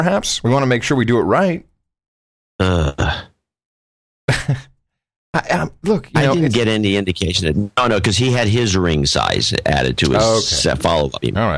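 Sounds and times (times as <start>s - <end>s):
speech: 0.0s - 1.7s, 2.6s - 3.3s, 4.3s - 4.7s, 5.3s - 11.5s
person groaning: 2.6s - 3.4s.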